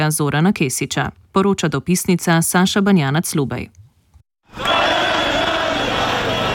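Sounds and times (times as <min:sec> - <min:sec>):
speech: 0:00.0 - 0:03.8
large protest crowd singing: 0:04.5 - 0:06.5.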